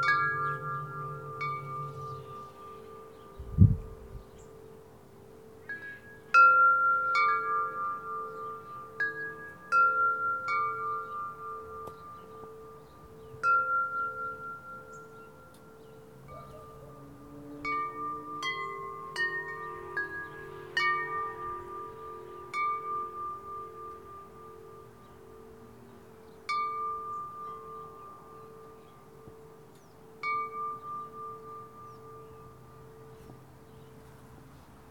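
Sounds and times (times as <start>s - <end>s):
local traffic: 0.0s - 34.8s
wind chimes: 0.0s - 34.8s
dog barking: 16.3s - 17.0s.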